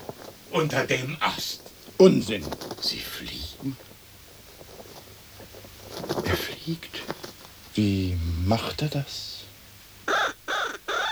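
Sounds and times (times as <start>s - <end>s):
speech: 0.5s - 3.8s, 6.4s - 7.0s, 7.8s - 9.3s
crow cawing: 9.5s - 11.1s.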